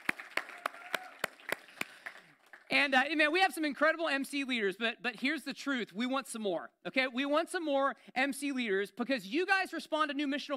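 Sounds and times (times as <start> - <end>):
round of applause: 0.0 - 2.7
speech: 2.7 - 10.5.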